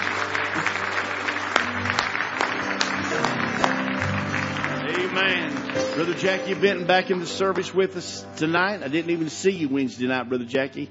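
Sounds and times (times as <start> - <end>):
audience applause: 0.0 - 8.0
speech: 6.0 - 10.8.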